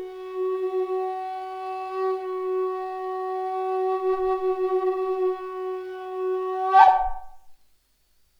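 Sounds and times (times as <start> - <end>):
F drone on flutes: 0.0 - 7.5.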